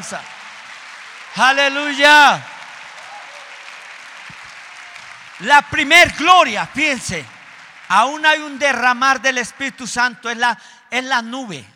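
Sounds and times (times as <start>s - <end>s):
speech: 0.0s - 0.4s, 1.4s - 2.5s, 5.4s - 11.7s
steady dense crowd applause: 0.0s - 8.9s.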